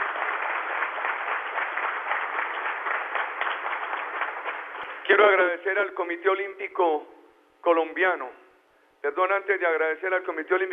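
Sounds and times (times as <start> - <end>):
audience applause: 0.0 - 5.0
speech: 5.1 - 8.4, 9.0 - 10.7.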